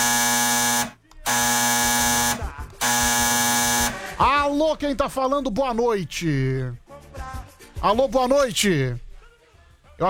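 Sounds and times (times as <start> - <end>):
telephone ringing with a harsh electronic buzz: 0.0 - 4.2
speech: 4.5 - 6.8, 7.8 - 9.0.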